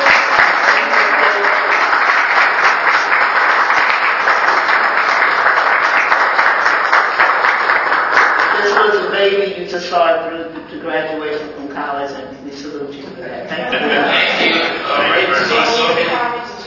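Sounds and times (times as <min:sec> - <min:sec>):
audience applause: 0:00.0 - 0:09.0
speech: 0:09.8 - 0:11.5
laughter: 0:13.5 - 0:16.1.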